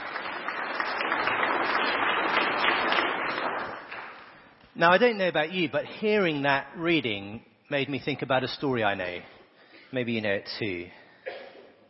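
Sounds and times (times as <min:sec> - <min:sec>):
round of applause: 0:00.0 - 0:04.6
speech: 0:04.8 - 0:11.0.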